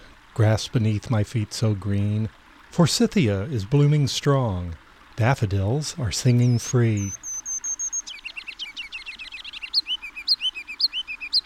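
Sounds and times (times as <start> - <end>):
speech: 0.4 - 7.2
kinglet singing: 6.3 - 11.4.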